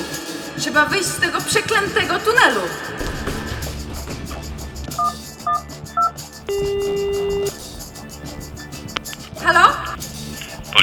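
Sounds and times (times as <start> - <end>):
speech: 0.6 - 3.3, 9.4 - 9.8
telephone dialing tones: 5.0 - 7.6.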